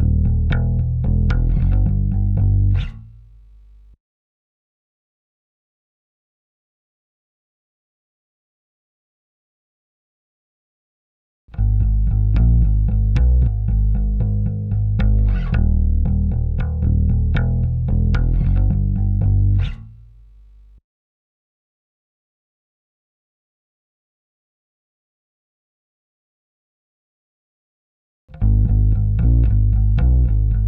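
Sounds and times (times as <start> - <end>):
bass: 0.0 - 4.0, 11.5 - 20.8, 28.3 - 30.6.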